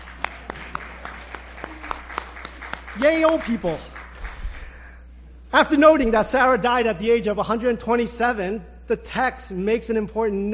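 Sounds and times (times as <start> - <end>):
Baptist church congregation scattered clapping: 0.0 - 4.8
speech: 3.0 - 3.9, 5.5 - 10.5.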